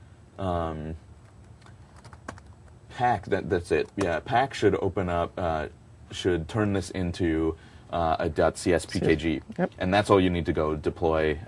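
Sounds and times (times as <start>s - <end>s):
speech: 0.4s - 1.1s, 3.0s - 11.4s
typing a command on a computer keyboard: 1.9s - 2.8s.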